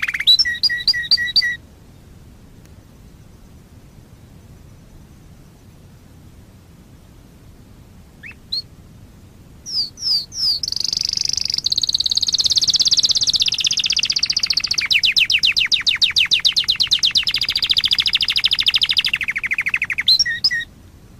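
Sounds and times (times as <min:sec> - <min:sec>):
Waterslager canary singing a high pulsed trill: 0:00.0 - 0:01.6, 0:08.2 - 0:08.7, 0:09.7 - 0:20.7.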